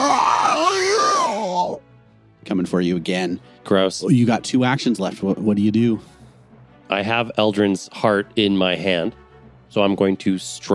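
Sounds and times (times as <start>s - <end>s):
person vocally imitating a creature's screech: 0.0s - 1.8s
speech: 2.5s - 6.2s, 6.9s - 10.7s.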